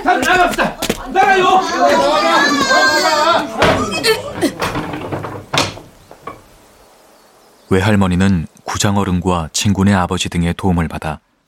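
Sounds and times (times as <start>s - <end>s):
speech: 0.0s - 0.7s, 7.7s - 11.3s
overlapping voices: 0.0s - 5.1s
heavy wooden gate thud: 1.9s - 6.9s
gate latch knocking and rattling: 3.4s - 6.6s.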